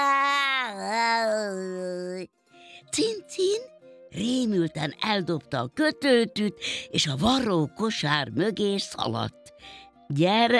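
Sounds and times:
person imitating a cat's meow: 0:00.0 - 0:02.3
speech: 0:02.9 - 0:10.5.

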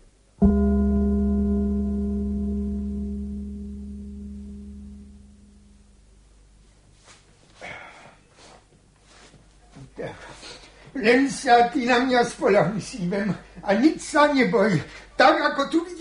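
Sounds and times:
gong being struck: 0:00.4 - 0:06.0
faint breath: 0:07.6 - 0:08.6
speech: 0:11.0 - 0:15.9.

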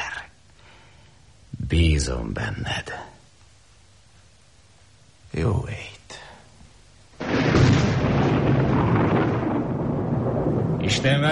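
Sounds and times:
speech: 0:01.7 - 0:03.1, 0:05.3 - 0:05.9, 0:11.0 - 0:11.3
thunder: 0:07.2 - 0:11.3.

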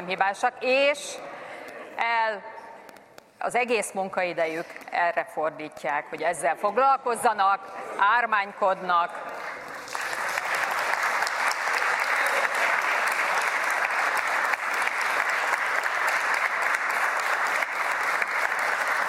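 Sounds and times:
speech: 0:00.0 - 0:01.3, 0:02.0 - 0:02.5, 0:03.4 - 0:09.3
audience applause: 0:09.3 - 0:19.0.

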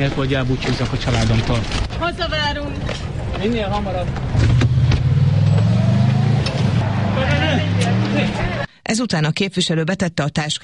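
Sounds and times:
speech: 0:00.0 - 0:04.6, 0:07.2 - 0:10.6
car engine humming while driving off: 0:04.1 - 0:08.6.

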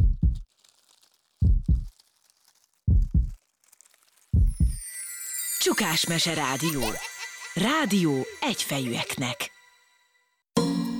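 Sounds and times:
slow heartbeat: 0:00.0 - 0:00.4, 0:01.4 - 0:01.9, 0:02.9 - 0:03.4, 0:04.4 - 0:04.8
faint crinkly high noise: 0:00.0 - 0:09.4
speech: 0:05.6 - 0:09.5.

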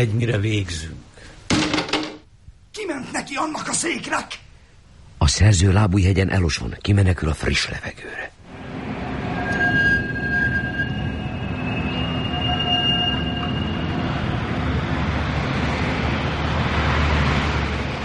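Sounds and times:
speech: 0:00.0 - 0:01.0, 0:03.0 - 0:04.4, 0:05.2 - 0:08.4
trams rumbling on rails at night: 0:08.5 - 0:18.0
tram bells ringing at night: 0:08.6 - 0:15.1.

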